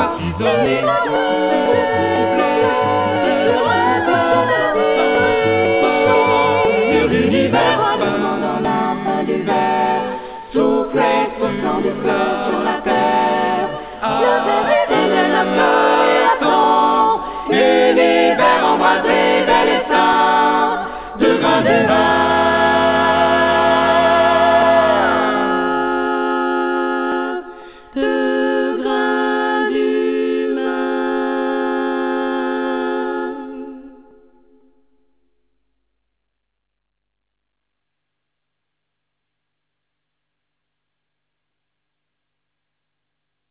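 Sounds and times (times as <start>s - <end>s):
vocals: 0.0s - 34.7s.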